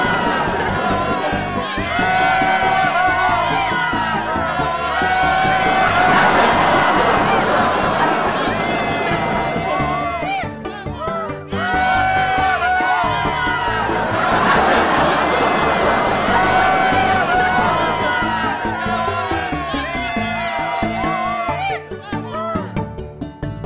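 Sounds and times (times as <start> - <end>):
crowd cheering and whooping at a royal welcome for a ship's captain: 0.0 - 22.7
laughter: 0.0 - 22.7.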